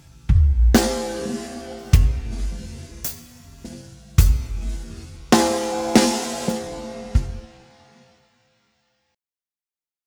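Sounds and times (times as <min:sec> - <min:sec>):
time-stretched drums: 0:00.0 - 0:08.0.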